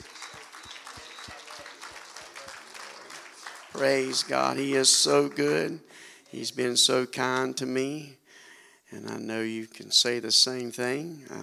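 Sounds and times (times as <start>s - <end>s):
audience clapping hands: 0.0s - 6.4s
speech: 3.8s - 8.2s, 8.9s - 11.4s.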